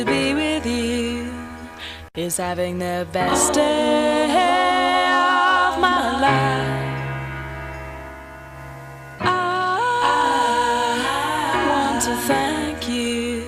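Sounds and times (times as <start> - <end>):
a cappella singing in a studio: 0.0 - 1.4, 2.2 - 7.2, 9.2 - 13.4.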